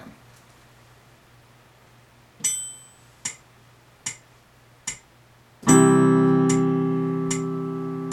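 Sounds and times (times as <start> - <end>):
rhythm ear training exercise: 4.1 - 8.1.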